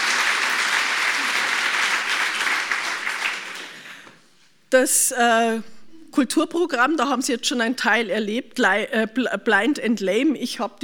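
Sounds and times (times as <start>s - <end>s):
audience applause at a public event with a cultural programme: 0.0s - 4.0s
speech: 4.7s - 10.8s.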